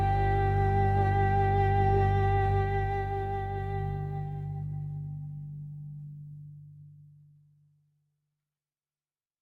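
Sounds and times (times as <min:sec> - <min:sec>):
game background music outside the match: 0:00.0 - 0:07.2.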